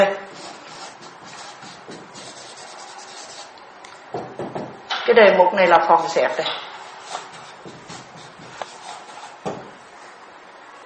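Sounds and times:
drawing on a board during a Buddhist dharma talk: 0:00.3 - 0:03.5, 0:06.8 - 0:09.6
speech: 0:05.1 - 0:06.6.

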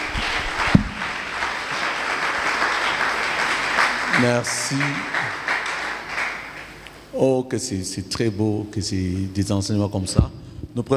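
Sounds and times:
church congregation applauding its pastor: 0:00.0 - 0:07.1
sharp thump: 0:00.7 - 0:01.1
speech: 0:04.2 - 0:05.2, 0:07.1 - 0:10.9.

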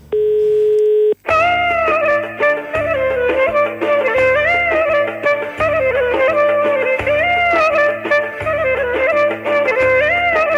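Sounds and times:
steady single-pitched telephone tone from a call to SYRIZA central offices: 0:00.0 - 0:01.2
loud upbeat music with pulsing bass line and bright melody: 0:01.3 - 0:10.5.

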